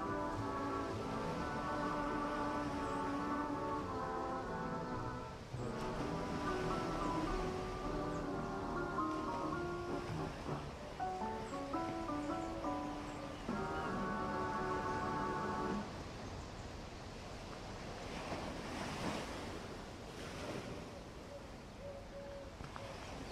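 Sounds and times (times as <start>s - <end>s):
seagulls calling: 0.0s - 16.0s
ocean waves: 0.0s - 23.3s.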